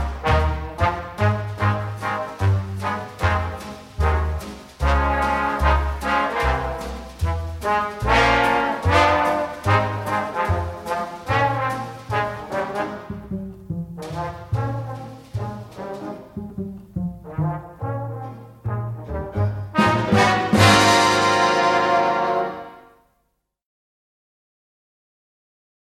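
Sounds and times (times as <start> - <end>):
estrada pop orchestra: 0.0 - 13.4, 17.2 - 22.9.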